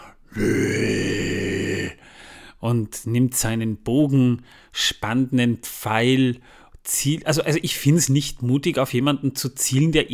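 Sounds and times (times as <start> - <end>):
person imitating a deep rumbling growl: 0.0 - 2.0
speech: 0.4 - 1.2, 2.6 - 10.1.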